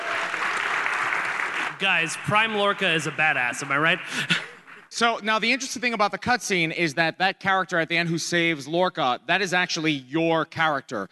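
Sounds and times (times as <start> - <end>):
audience applause: 0.0 - 4.4
speech: 1.8 - 11.0
laughter: 3.8 - 6.0.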